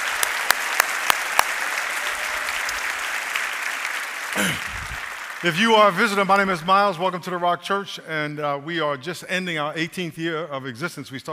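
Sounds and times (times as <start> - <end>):
church congregation applauding: 0.0 - 7.0
speech: 5.4 - 11.3.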